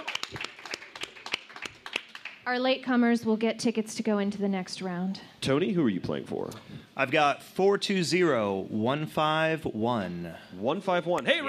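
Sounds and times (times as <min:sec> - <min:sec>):
audience applause: 0:00.0 - 0:02.4
speech: 0:02.5 - 0:11.4.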